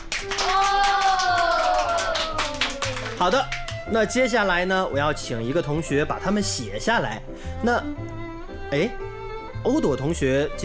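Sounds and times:
children clapping in a classroom: 0:00.0 - 0:03.9
speech: 0:03.2 - 0:08.1, 0:08.7 - 0:09.0, 0:09.6 - 0:10.6.

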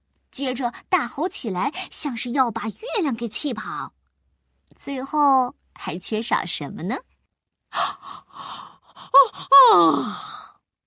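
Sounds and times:
speech: 0:00.4 - 0:04.0, 0:04.8 - 0:07.1, 0:07.7 - 0:10.5
person imitating a yawn: 0:09.0 - 0:10.4.

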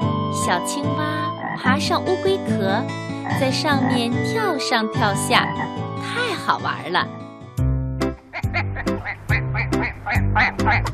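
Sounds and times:
speech: 0:00.4 - 0:07.2, 0:10.4 - 0:10.9
duck quacking: 0:08.3 - 0:10.9.

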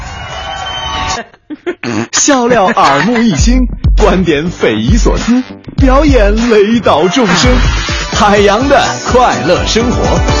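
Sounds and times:
audience cheering: 0:00.0 - 0:01.2
laughter: 0:01.2 - 0:03.7
speech: 0:01.6 - 0:10.3.

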